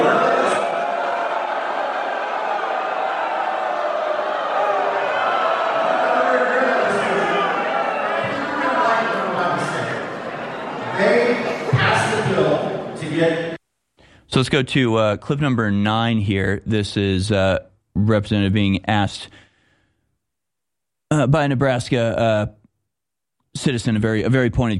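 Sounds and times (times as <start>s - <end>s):
town hall crowd shouting and jeering: 0.0s - 13.1s
speech: 14.4s - 19.4s, 21.1s - 22.6s, 23.6s - 24.7s.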